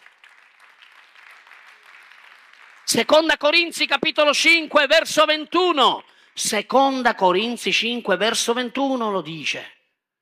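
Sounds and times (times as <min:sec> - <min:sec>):
audience applause: 0:00.0 - 0:03.2
speech: 0:02.9 - 0:09.8.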